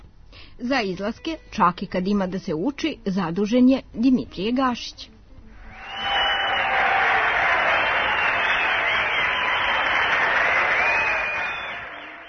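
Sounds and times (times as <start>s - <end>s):
speech: 0.7s - 5.1s
applause in a radio studio: 5.8s - 12.2s.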